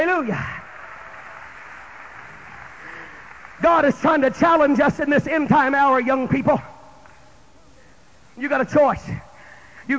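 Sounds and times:
audience clapping hands: 0.0 - 5.1
speech: 0.1 - 0.6, 3.6 - 6.7, 8.4 - 9.3.

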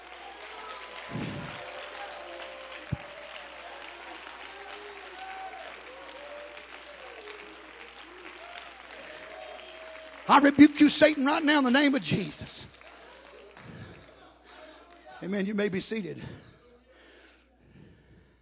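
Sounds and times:
audience clapping hands: 0.0 - 16.1
speech: 10.3 - 12.8, 15.2 - 16.5.

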